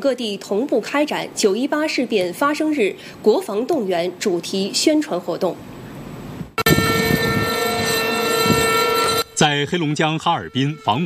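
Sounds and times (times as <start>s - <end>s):
speech: 0.0s - 5.8s, 9.4s - 11.0s
air raid siren wailing over city: 6.6s - 11.0s.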